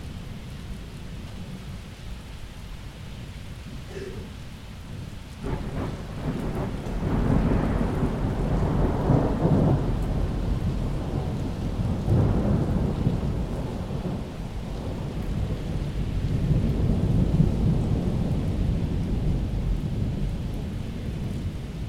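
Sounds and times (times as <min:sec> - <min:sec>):
thunder in a summer storm: 0:05.4 - 0:21.8.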